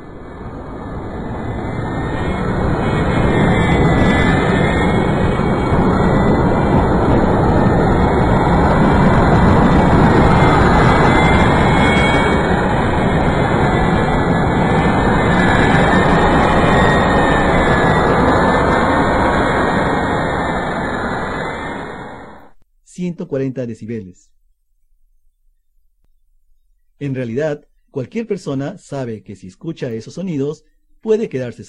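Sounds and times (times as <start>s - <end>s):
jet airplane taking off: 0.0s - 22.6s
speech: 23.2s - 24.4s, 27.0s - 31.6s.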